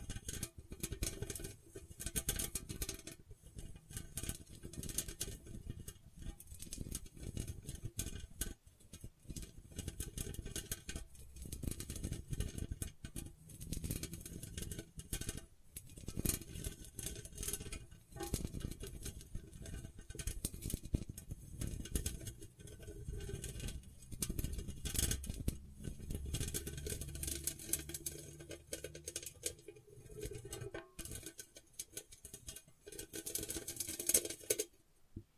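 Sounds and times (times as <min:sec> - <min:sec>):
gentle scratching: 0:00.0 - 0:34.8.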